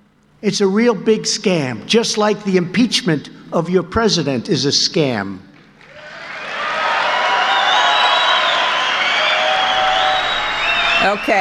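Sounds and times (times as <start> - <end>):
speech: 0.4 - 5.5, 11.0 - 11.4
large rally crowd cheering and shouting: 5.9 - 11.4.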